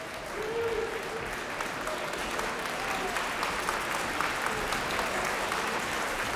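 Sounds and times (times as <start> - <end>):
concert audience applause: 0.0 - 6.3.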